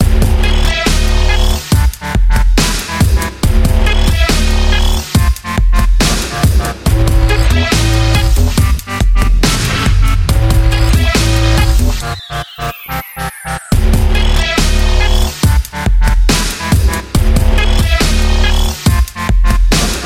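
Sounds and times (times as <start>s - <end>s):
game music: 0.0s - 20.0s.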